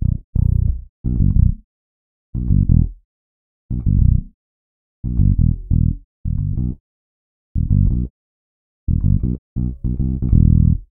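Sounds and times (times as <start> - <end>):
bassline: 0.0 - 1.6, 2.4 - 3.0, 3.7 - 4.3, 5.0 - 6.8, 7.6 - 8.1, 8.9 - 10.8.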